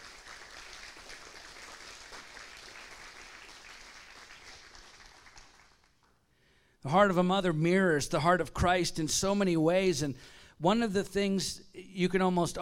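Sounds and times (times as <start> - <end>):
audience applause: 0.0 - 6.1
speech: 6.8 - 12.6.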